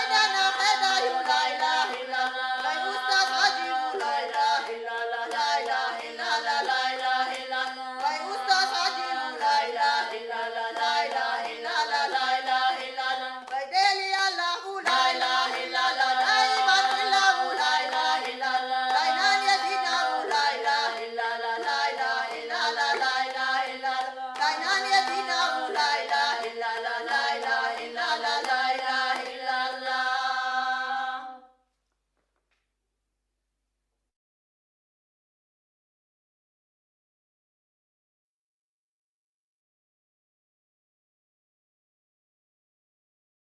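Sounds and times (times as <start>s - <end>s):
Chechen polyphonic singing: 0.0s - 31.5s.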